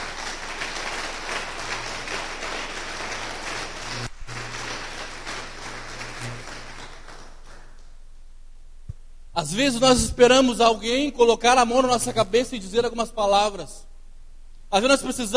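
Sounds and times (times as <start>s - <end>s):
church congregation applause: 0.0s - 7.9s
speech: 9.4s - 13.8s, 14.7s - 15.3s.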